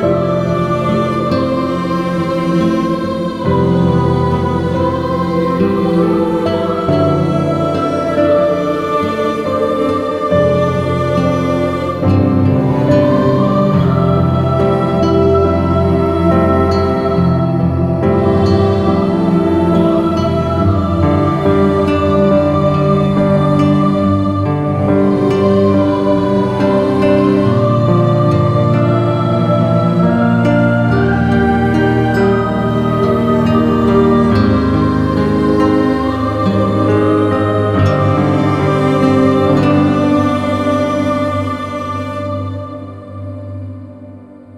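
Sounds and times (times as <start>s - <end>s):
emotional music loop: 0.0s - 44.5s.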